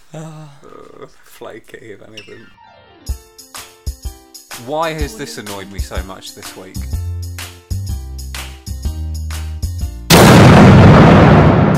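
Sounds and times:
speech: 0.1s - 2.6s, 4.6s - 7.0s
short musical jingle with stabbed chords: 4.6s - 7.0s
gunshot sound effect: 10.1s - 11.7s.

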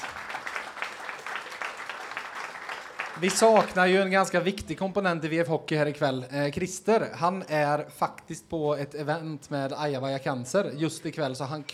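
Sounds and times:
audience applause: 0.0s - 4.1s
speech: 3.2s - 11.7s.

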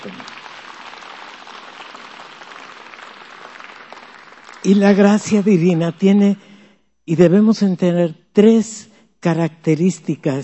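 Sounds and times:
audience applause: 0.0s - 5.0s
speech: 4.6s - 6.5s, 7.1s - 10.4s.

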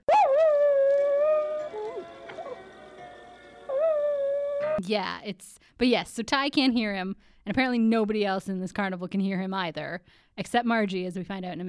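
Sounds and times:
dog howling with warbling yelps: 0.1s - 2.7s, 3.7s - 4.8s
speech: 4.8s - 11.6s.

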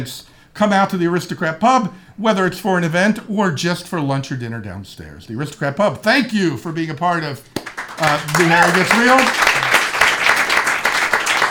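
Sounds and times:
speech: 0.0s - 9.5s
enthusiastic audience applause: 7.6s - 11.4s.

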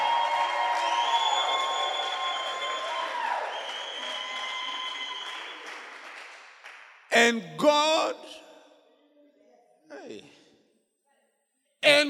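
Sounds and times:
audience clapping: 0.0s - 7.5s
speech: 7.2s - 8.4s.

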